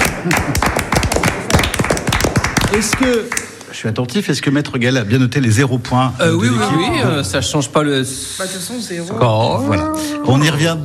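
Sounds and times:
small studio audience clapping for a radio quiz contestant: 0.0 - 3.8
speech: 0.2 - 0.8, 2.7 - 10.8.

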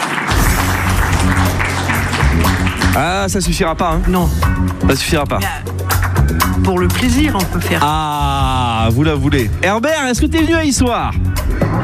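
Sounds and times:
audience applause on a quiz show: 0.0 - 4.4
speech: 3.0 - 5.8, 6.6 - 11.8.

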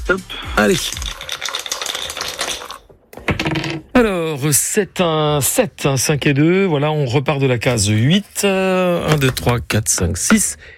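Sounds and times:
speech: 0.1 - 1.1, 4.0 - 10.7
three dice shaken and rolled for a radio board game: 0.7 - 2.8.

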